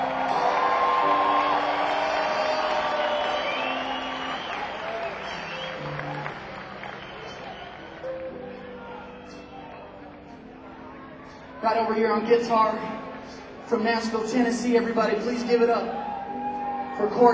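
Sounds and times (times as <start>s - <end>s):
concert audience whooping: 0.0s - 9.9s, 15.9s - 17.1s
concert audience applause for a band on stage: 0.0s - 11.0s
speech: 11.6s - 13.0s, 13.7s - 16.0s, 17.0s - 17.3s.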